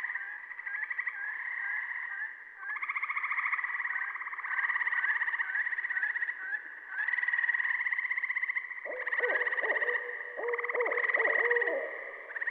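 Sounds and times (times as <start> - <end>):
Gray Treefrog calling: 0.0 - 12.4
Saw-whet Owl calling: 8.9 - 12.4.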